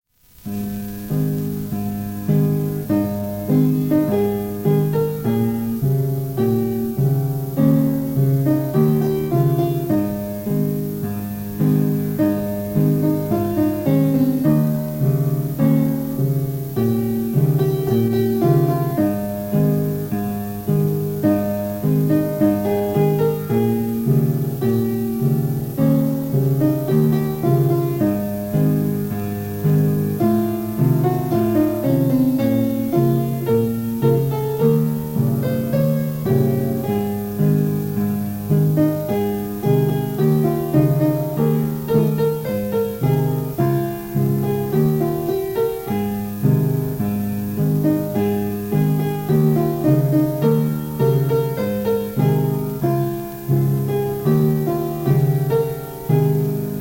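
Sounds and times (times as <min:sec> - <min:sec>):
school anthem on piano: 0:00.0 - 0:56.7.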